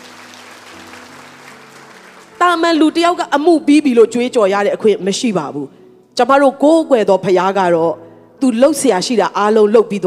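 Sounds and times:
church congregation clapping during a Sunday afternoon sermon: 0:00.0 - 0:02.8
speech: 0:02.4 - 0:10.0.

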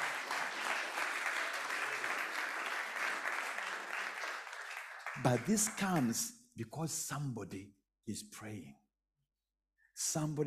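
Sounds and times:
audience clapping: 0:00.0 - 0:06.3
speech: 0:05.2 - 0:08.8, 0:10.0 - 0:10.4.

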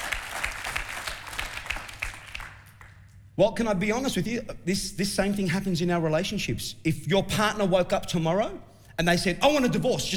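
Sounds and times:
audience applause: 0:00.0 - 0:03.0
speech: 0:03.4 - 0:10.1.

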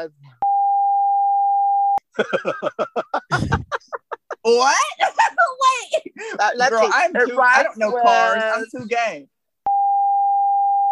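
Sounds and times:
speech: 0:00.0 - 0:00.4, 0:02.2 - 0:09.3
censor bleep tone over a name: 0:00.4 - 0:02.0, 0:09.6 - 0:10.9
laughter: 0:02.1 - 0:09.1.

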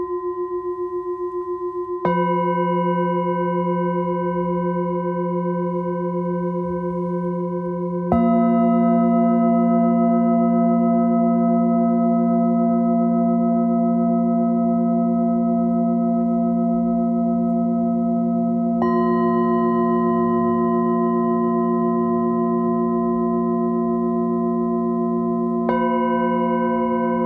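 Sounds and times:
Nepalese singing bowl ringing: 0:00.0 - 0:27.2.

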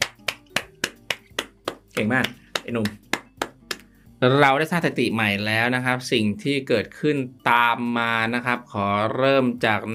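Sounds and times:
sharp hand claps: 0:00.0 - 0:03.9
speech: 0:02.0 - 0:03.1, 0:04.2 - 0:09.9.

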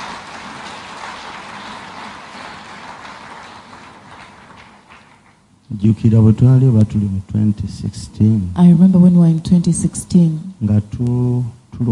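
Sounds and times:
audience clapping hands: 0:00.0 - 0:05.5
speech: 0:05.7 - 0:11.9.

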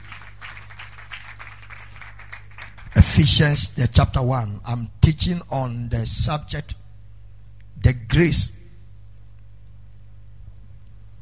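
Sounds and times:
audience clapping hands: 0:00.0 - 0:03.2
speech: 0:03.0 - 0:06.8, 0:07.8 - 0:08.6.

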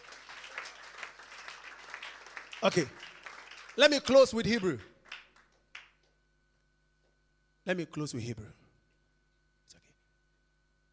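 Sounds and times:
audience applause: 0:00.0 - 0:05.5
speech: 0:02.6 - 0:03.0, 0:03.8 - 0:04.9, 0:07.7 - 0:08.6.

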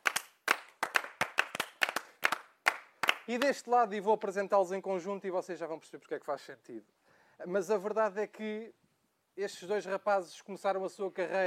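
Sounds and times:
audience applause of crisp hand claps: 0:00.0 - 0:03.6
speech: 0:03.3 - 0:08.8, 0:09.4 - 0:11.4.

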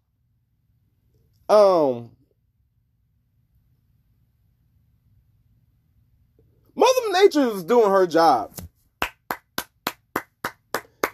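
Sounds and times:
speech: 0:01.5 - 0:02.2, 0:07.2 - 0:08.7
hand clapping: 0:08.6 - 0:11.1.

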